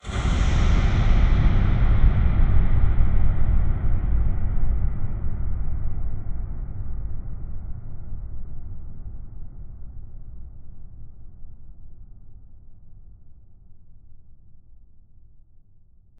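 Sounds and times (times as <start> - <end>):
huge long reverb tail: 0.0 - 7.2.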